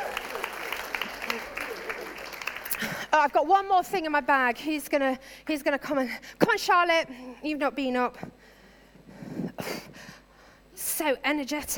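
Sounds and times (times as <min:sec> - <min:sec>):
audience applause: 0:00.0 - 0:03.0
speech: 0:03.2 - 0:08.4, 0:11.0 - 0:11.7.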